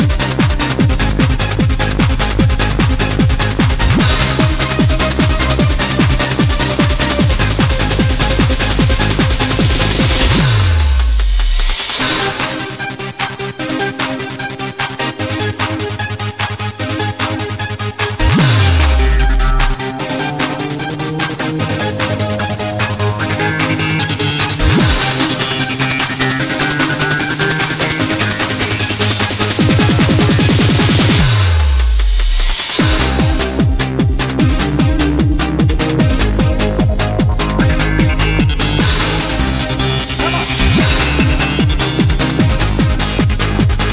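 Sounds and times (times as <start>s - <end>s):
dance music: 0.0s - 43.9s.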